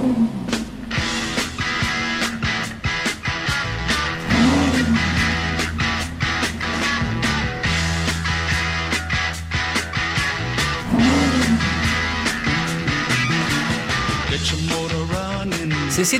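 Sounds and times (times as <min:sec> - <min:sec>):
sports car engine revving and pulling away: 0:00.0 - 0:15.8.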